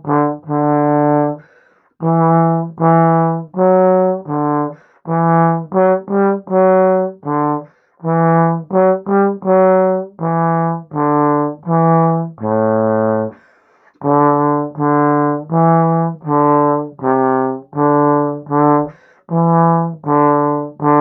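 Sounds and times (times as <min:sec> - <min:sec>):
trombone playing a classical melody: 0:00.0 - 0:13.4, 0:14.0 - 0:20.9.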